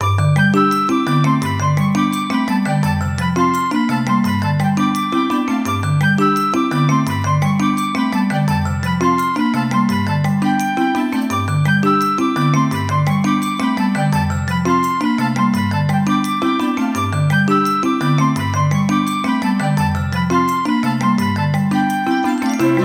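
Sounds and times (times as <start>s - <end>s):
background music loop: 0.0s - 22.8s.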